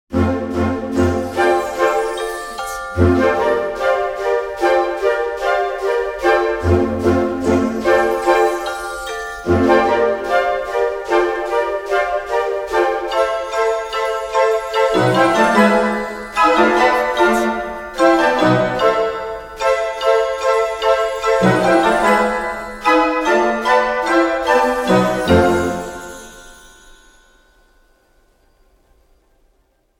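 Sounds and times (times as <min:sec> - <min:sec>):
epic adventure orchestral music: 0:00.2 - 0:27.0.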